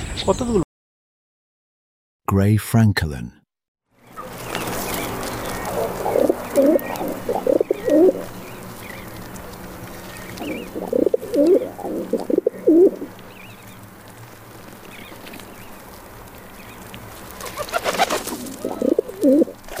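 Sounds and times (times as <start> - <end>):
speech: 0.3 - 0.7, 2.3 - 3.4
rock pigeon cooing: 5.4 - 8.3, 10.3 - 13.1, 17.4 - 19.6.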